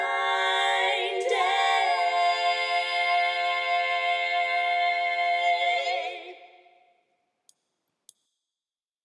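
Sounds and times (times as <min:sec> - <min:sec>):
tenor singing: 0:00.0 - 0:06.4.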